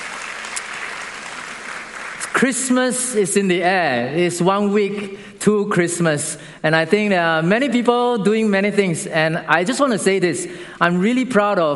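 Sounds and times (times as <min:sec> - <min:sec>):
audience applause: 0:00.0 - 0:02.4
speech: 0:02.4 - 0:11.7.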